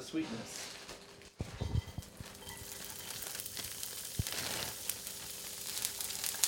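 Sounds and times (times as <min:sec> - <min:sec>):
shredded carrots frying: 0:01.6 - 0:06.4.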